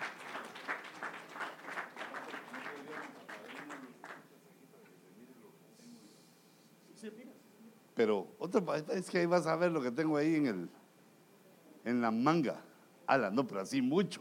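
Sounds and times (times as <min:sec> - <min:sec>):
audience clapping hands: 0:00.0 - 0:04.3
speech: 0:07.0 - 0:07.4, 0:08.0 - 0:10.8, 0:11.8 - 0:14.1.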